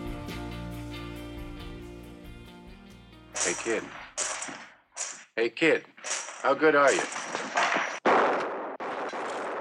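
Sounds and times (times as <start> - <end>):
gunshots in a dark saloon scene from a western film: 3.4 - 5.3, 6.0 - 9.5
speech: 3.5 - 4.0, 5.3 - 7.6.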